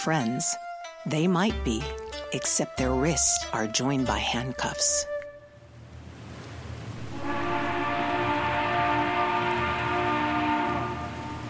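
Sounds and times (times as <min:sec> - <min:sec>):
speech: 0:00.0 - 0:05.1
ship's warning whistle blast: 0:07.0 - 0:11.4.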